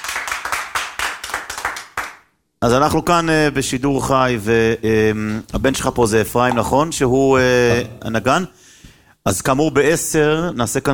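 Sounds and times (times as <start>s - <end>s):
audience clapping rhythmically at a live Selichot music event: 0.0s - 2.4s
speech: 2.6s - 10.9s.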